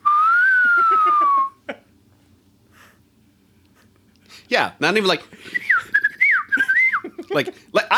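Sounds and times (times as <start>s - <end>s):
person whistling a bird call: 0.0s - 1.6s, 5.6s - 7.0s
speech: 4.5s - 5.6s, 7.3s - 7.9s.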